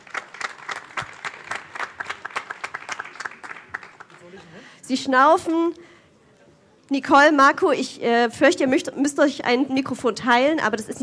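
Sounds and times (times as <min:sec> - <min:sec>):
audience applause: 0:00.0 - 0:04.3
speech: 0:04.3 - 0:05.9, 0:06.9 - 0:11.0.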